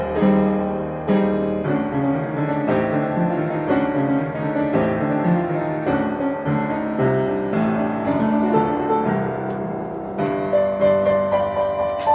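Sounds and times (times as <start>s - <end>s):
solo piano piece: 0.0s - 12.1s.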